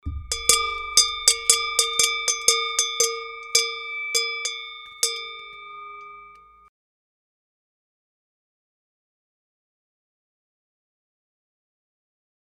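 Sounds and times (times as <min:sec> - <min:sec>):
bell: 0:00.1 - 0:06.7.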